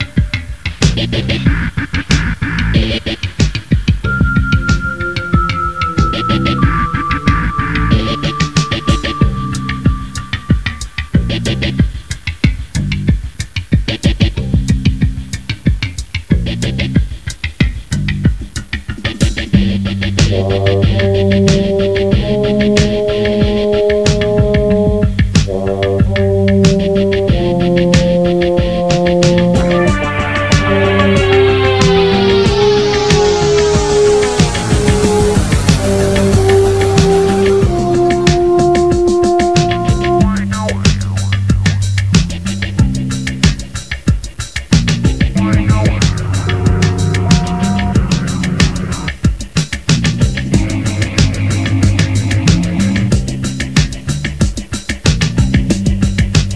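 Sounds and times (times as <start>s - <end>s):
background music: 0.0s - 56.5s.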